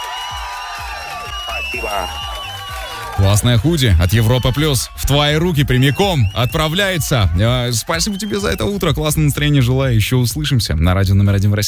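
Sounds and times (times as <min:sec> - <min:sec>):
applause: 0:00.0 - 0:08.9
crowd cheering and whooping: 0:00.0 - 0:09.9
speech: 0:01.7 - 0:02.3, 0:03.2 - 0:11.6.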